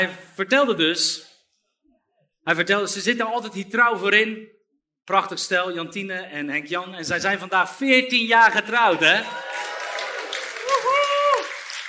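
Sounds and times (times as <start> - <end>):
speech: 0.0 - 1.3, 2.4 - 9.7
audience applause: 8.9 - 11.8.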